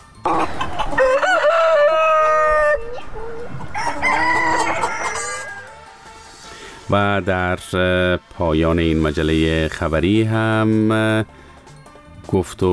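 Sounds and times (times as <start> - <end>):
hens clucking: 0.2 - 5.8
rooster crowing: 0.3 - 5.9
speech: 6.9 - 11.4, 12.3 - 12.7.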